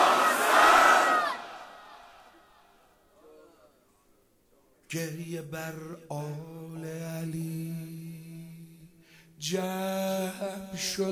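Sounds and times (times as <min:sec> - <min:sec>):
large crowd shouting a short chant in unison: 0:00.0 - 0:02.6
speech: 0:04.9 - 0:07.9, 0:09.4 - 0:11.1.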